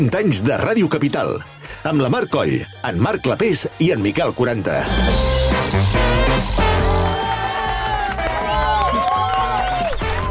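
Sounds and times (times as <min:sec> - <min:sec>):
speech: 0:00.0 - 0:06.0
live applause: 0:06.5 - 0:10.2
live cheering: 0:06.5 - 0:10.2.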